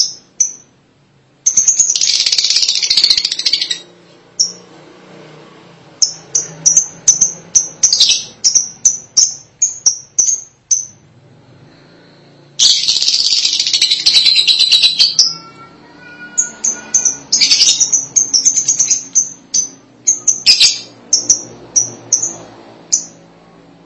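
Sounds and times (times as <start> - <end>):
lovebird chattering: 1.5 - 4.6, 6.0 - 11.0, 12.6 - 23.2.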